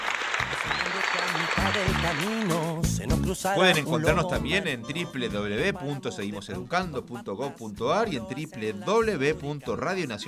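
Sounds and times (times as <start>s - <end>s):
applause: 0.0s - 3.0s
speech: 1.2s - 10.2s.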